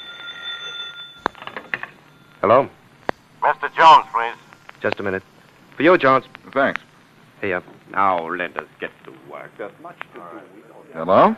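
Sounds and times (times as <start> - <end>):
telephone ringing: 0.0 - 2.4
speech: 2.4 - 2.8, 3.4 - 11.3.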